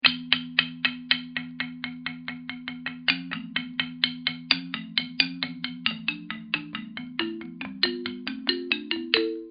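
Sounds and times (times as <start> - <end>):
marimba: 0.0 - 9.4.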